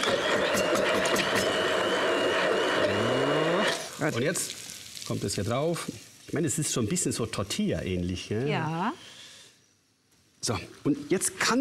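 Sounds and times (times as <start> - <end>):
immersion hand blender running: 0.0 - 3.9
speech: 4.0 - 9.2, 10.4 - 11.5.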